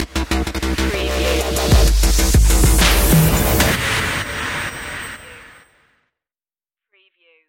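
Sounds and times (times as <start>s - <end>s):
dubstep stinger: 0.0s - 5.6s.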